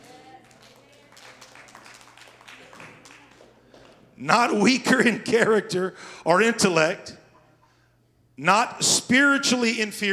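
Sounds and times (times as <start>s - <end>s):
audience clapping: 0.0s - 4.2s
speech: 4.2s - 7.2s, 8.4s - 10.1s.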